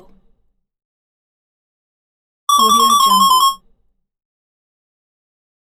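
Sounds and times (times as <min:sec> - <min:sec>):
game sound effects: 0:02.5 - 0:03.6.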